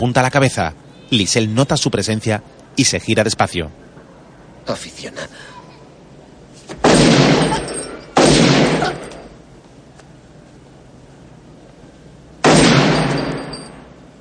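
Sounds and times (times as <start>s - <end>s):
speech: 0.0s - 3.9s, 4.7s - 5.6s
gunshots from the 1990 action film The Rookie: 6.8s - 9.2s, 12.4s - 13.5s.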